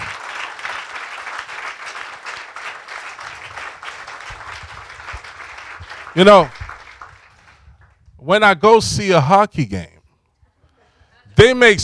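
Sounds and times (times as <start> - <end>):
audience clapping: 0.0 - 8.0
speech: 6.2 - 6.6, 8.3 - 9.9, 11.4 - 11.8.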